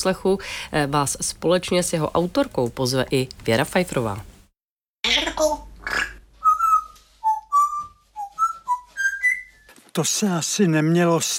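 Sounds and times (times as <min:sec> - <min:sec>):
speech: 0:00.0 - 0:04.3, 0:10.0 - 0:11.3
parrot whistling: 0:06.4 - 0:09.7.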